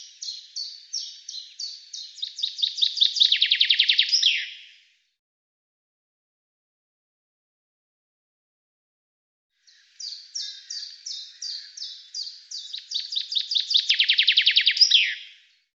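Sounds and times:
bird song of fast descending trill of sharp notes: 0.0 - 4.9, 9.6 - 15.7.

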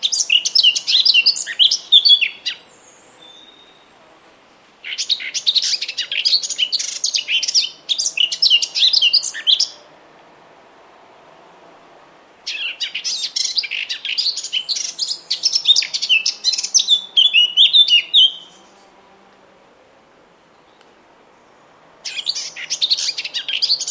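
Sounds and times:
bird calling in high chirps with buzzy trills and tweets: 0.0 - 3.9, 4.8 - 9.8, 12.5 - 18.8, 22.0 - 23.8.

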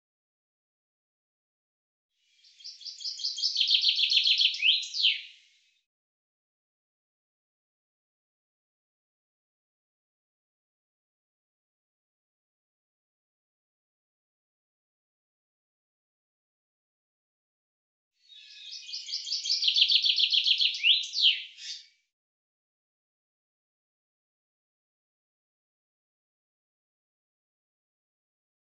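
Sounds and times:
common chaffinch singing: 2.4 - 5.4, 18.2 - 21.9.

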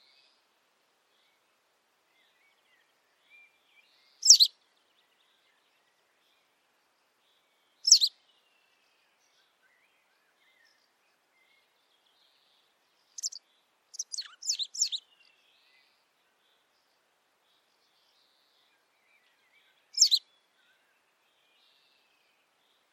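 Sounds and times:
high squeaky bird chirps: 4.2 - 4.5, 7.9 - 8.1, 13.2 - 13.4, 14.0 - 15.0, 20.0 - 20.2.

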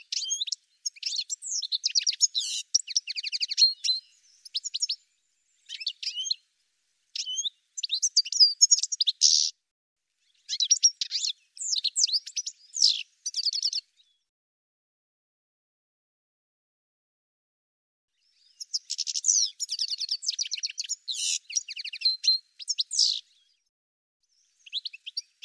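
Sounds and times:
bird calls of high rapid chirps and twittering notes: 0.0 - 6.4, 7.2 - 9.5, 10.2 - 14.2, 18.2 - 23.6, 24.3 - 25.4.

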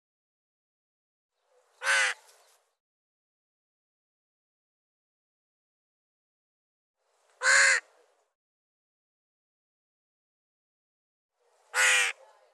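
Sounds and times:
bird harsh raspy caws: 1.8 - 2.3, 7.4 - 7.9, 11.7 - 12.2.

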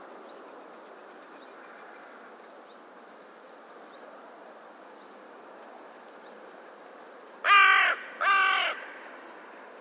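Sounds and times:
bird giving loud harsh drawn-out cawing calls: 7.4 - 9.2.

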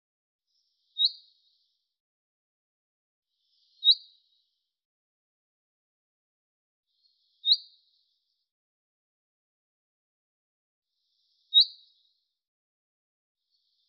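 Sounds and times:
bird giving short high chirps: 0.5 - 1.7, 3.5 - 4.4, 6.9 - 8.1, 11.2 - 12.1.

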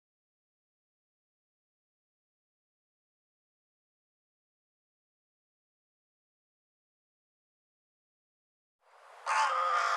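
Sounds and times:
bird cawing: 9.2 - 9.9.

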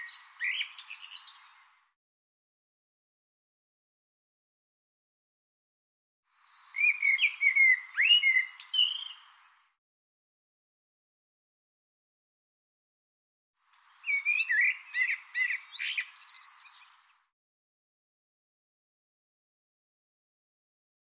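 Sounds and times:
bird song: 0.0 - 2.0, 6.3 - 9.8, 13.6 - 17.4.

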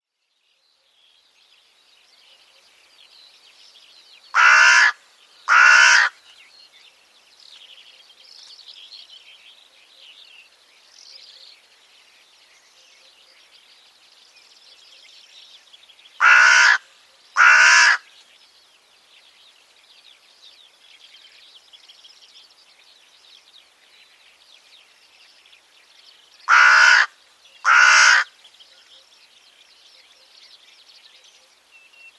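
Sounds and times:
bird cawing: 4.4 - 6.2, 16.2 - 16.8, 17.4 - 18.0, 26.5 - 28.3.

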